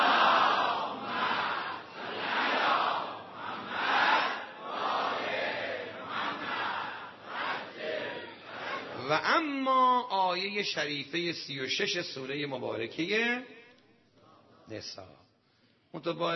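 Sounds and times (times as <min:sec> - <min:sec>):
crowd chanting salawat in unison at a Qur'an gathering: 0:00.0 - 0:09.1
speech: 0:09.1 - 0:13.5, 0:14.7 - 0:15.2, 0:15.9 - 0:16.3.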